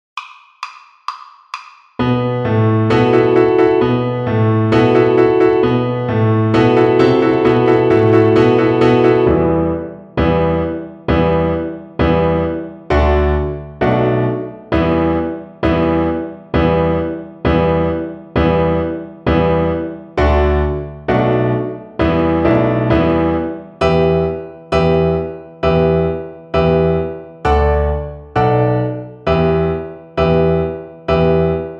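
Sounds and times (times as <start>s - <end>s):
piano accompaniment: 2.0s - 31.7s.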